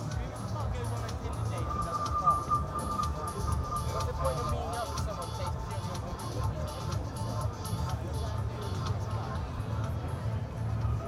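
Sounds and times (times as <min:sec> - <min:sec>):
crowd chatter at the Glastonbury festival grounds at night: 0:00.0 - 0:11.0
rising tone: 0:01.4 - 0:04.8.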